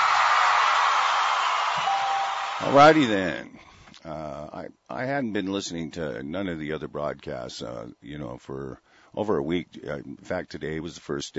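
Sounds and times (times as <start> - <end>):
crowd applause: 0.0 - 3.2
speech: 2.6 - 11.3.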